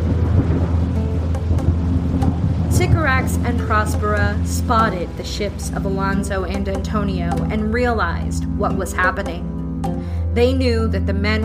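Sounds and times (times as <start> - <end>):
heavy rain in a tempest lashing a small island: 0.0 - 6.8
low thunder rumbling: 0.0 - 8.8
speech: 3.2 - 9.5, 10.4 - 11.4.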